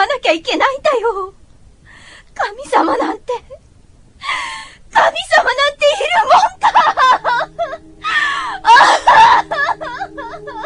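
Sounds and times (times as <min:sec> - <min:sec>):
speech: 0:00.0 - 0:01.4, 0:02.4 - 0:03.6, 0:04.3 - 0:10.6
middle-aged woman sobbing and wailing: 0:04.2 - 0:10.6.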